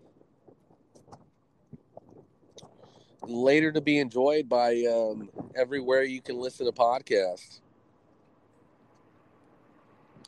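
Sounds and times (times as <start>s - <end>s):
faint wind buffeting the microphone outdoors: 0.0s - 7.0s
speech: 3.2s - 7.6s.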